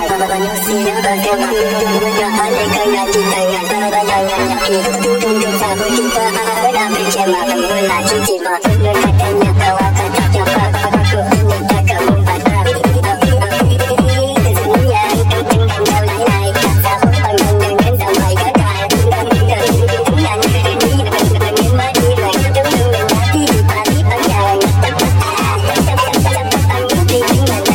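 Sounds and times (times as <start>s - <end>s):
sped-up hardbass: 0.1s - 27.7s.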